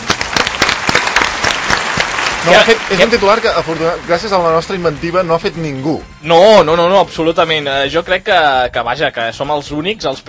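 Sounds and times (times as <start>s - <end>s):
audience applause: 0.0s - 5.9s
speech: 2.4s - 10.2s.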